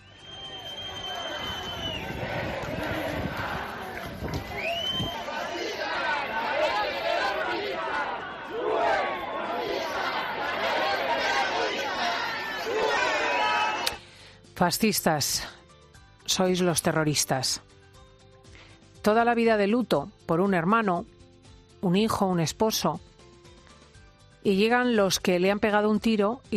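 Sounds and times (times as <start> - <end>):
agitated crowd shouting and jeering: 0.0 - 14.0
speech: 14.6 - 15.6, 16.3 - 17.7, 19.0 - 21.2, 21.8 - 23.1, 24.4 - 26.5.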